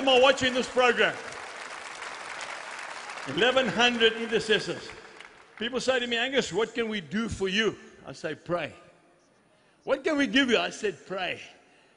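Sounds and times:
speech: 0.0s - 1.3s, 3.2s - 5.0s, 5.6s - 8.8s, 9.8s - 11.6s
audience clapping: 0.0s - 6.4s.

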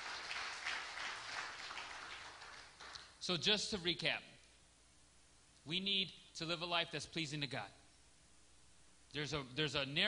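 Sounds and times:
congregation clapping hands in praise at a church service: 0.0s - 3.2s
speech: 3.2s - 4.3s, 5.6s - 7.8s, 9.1s - 10.0s.

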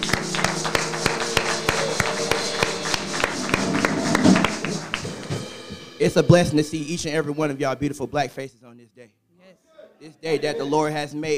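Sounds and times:
audience hand clapping: 0.0s - 5.7s
speech: 6.0s - 11.3s.

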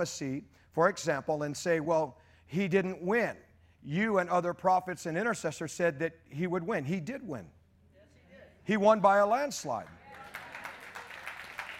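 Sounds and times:
speech: 0.0s - 7.6s, 8.7s - 10.0s
audience applause: 10.1s - 11.7s.

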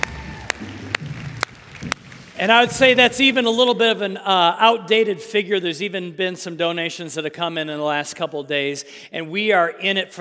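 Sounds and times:
applause: 0.0s - 3.3s
speech: 2.4s - 10.1s.

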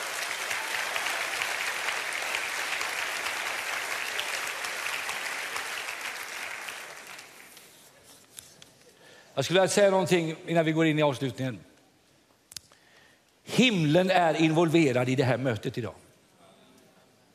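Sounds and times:
audience applause: 0.0s - 7.8s
speech: 9.4s - 11.7s, 13.6s - 16.0s.

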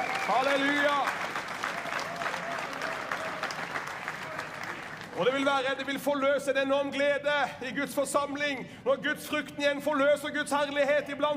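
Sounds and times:
audience applauding: 0.0s - 5.8s
speech: 0.3s - 1.2s, 5.2s - 11.3s.

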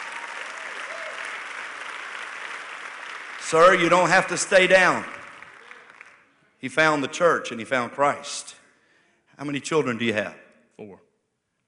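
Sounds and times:
audience applauding: 0.0s - 6.3s
speech: 3.5s - 5.2s, 6.6s - 8.6s, 9.4s - 11.1s.

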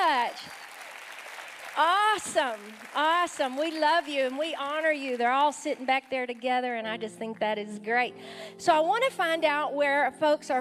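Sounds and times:
audience applause: 0.0s - 6.1s
speech: 1.8s - 10.5s.

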